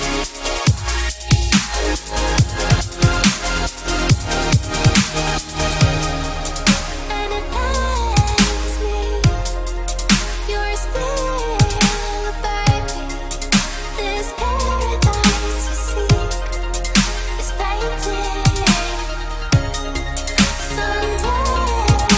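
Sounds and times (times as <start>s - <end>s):
trance beat: 0.0s - 22.1s
female vocals: 6.9s - 9.5s, 10.3s - 16.6s, 17.2s - 19.8s, 20.5s - 22.1s.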